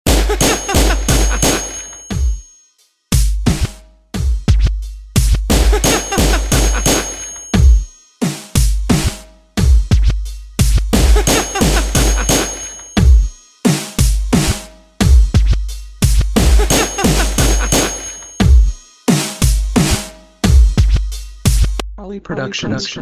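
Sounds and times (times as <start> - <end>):
bass gun beat: 0.0 - 2.4, 3.1 - 7.9, 8.6 - 12.4, 13.0 - 13.4, 14.0 - 17.8, 18.4 - 18.8, 19.4 - 22.0.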